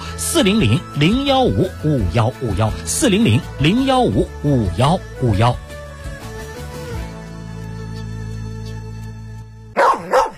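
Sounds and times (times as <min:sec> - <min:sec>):
speech: 0:00.3 - 0:05.6
dog barking: 0:09.8 - 0:10.3.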